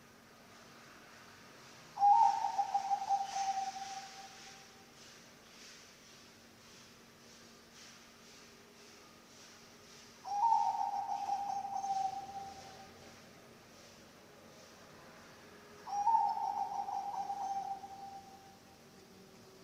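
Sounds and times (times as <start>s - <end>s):
hiss: 0.0s - 19.6s
zebra dove cooing: 2.0s - 4.6s, 10.3s - 13.0s, 15.9s - 18.6s.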